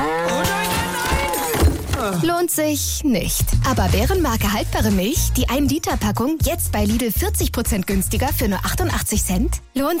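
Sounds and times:
cow mooing: 0:00.0 - 0:01.5
speech: 0:02.2 - 0:09.9.

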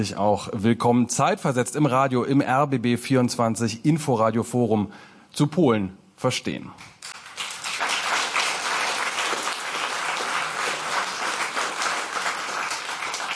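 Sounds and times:
speech: 0:00.0 - 0:06.9
packed hall audience applause at the RBB roof lounge in Berlin: 0:07.1 - 0:13.3.

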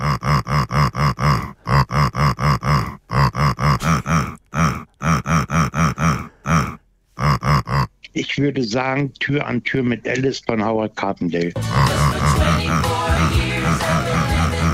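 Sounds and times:
pig grunting a song: 0:00.0 - 0:08.0, 0:11.6 - 0:14.7
speech: 0:08.2 - 0:12.9.

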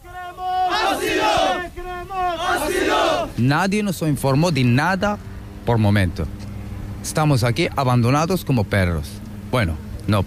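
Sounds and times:
crowd shouting and chanting in protest: 0:00.0 - 0:03.4
speech: 0:03.4 - 0:06.4, 0:07.0 - 0:10.2.

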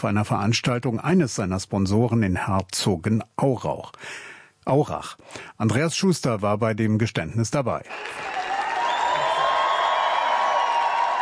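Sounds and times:
speech: 0:00.0 - 0:08.4
crowd cheering and applause: 0:07.9 - 0:11.1
high whoops: 0:07.9 - 0:11.1.

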